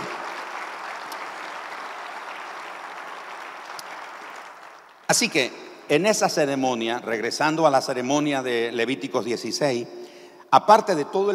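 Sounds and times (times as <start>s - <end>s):
audience applause: 0.0s - 5.4s
speech: 5.1s - 11.3s.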